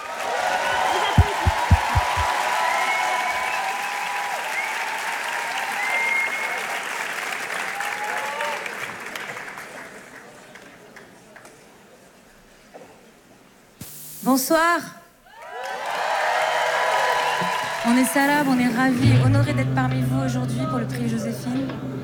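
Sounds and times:
light cheering: 0.0 - 3.6
audience applause welcoming a band at a music award evening: 0.0 - 11.1, 15.4 - 18.2
soft thumps: 1.2 - 2.3
speech: 14.4 - 15.0, 17.8 - 22.0.

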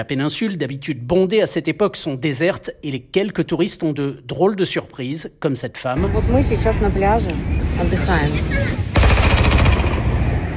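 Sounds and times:
speech: 0.0 - 8.9
heavy weapons firing at drones: 8.9 - 10.5.

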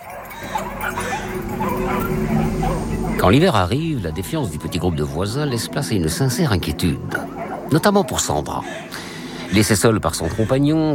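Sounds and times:
several dogs barking and yipping: 0.0 - 10.9
dog whimpers: 0.2 - 3.3, 4.5 - 9.6
speech: 0.4 - 10.9.

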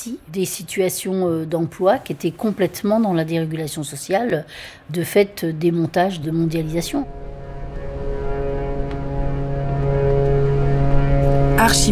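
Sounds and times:
speech: 0.0 - 7.2, 11.7 - 11.8
ship horns sounding together at sea: 6.2 - 11.8.

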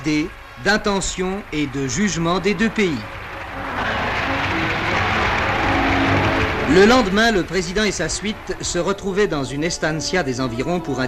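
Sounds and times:
speech: 0.0 - 3.2, 6.7 - 11.0
Argentine Parliament ovation for President de Gaulle: 1.6 - 8.8.

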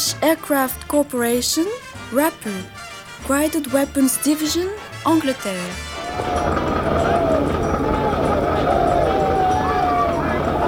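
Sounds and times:
speech: 0.1 - 7.2
troops shouting before charging to assault: 6.0 - 10.6.

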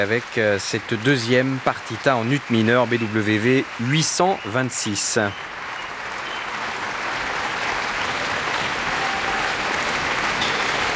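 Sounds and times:
speech: 0.0 - 5.6
audience applauding after a piano recital at La Roque d'Anthéron festival: 0.0 - 10.9.

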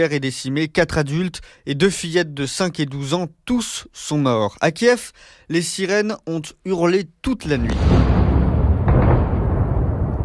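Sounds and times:
speech: 0.0 - 8.2
suicide drone strike explosion: 7.7 - 10.2.

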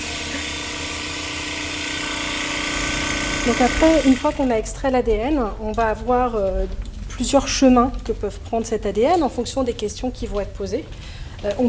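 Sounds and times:
tissue lyser bead mill vibrating with mechanical buzz and rattle: 0.0 - 4.6
speech: 3.4 - 11.6.

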